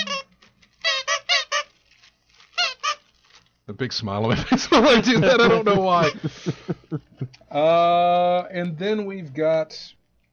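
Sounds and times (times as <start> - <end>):
squeaky dog chew toy squeaking: 0.0 - 1.7, 2.5 - 3.1
speech: 3.7 - 10.3
laughter: 4.3 - 7.4.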